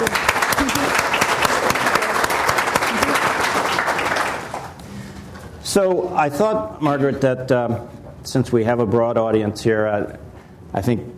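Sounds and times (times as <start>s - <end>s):
audience applause welcoming a climate scientist to a talk: 0.0s - 4.8s
speech: 5.7s - 11.1s.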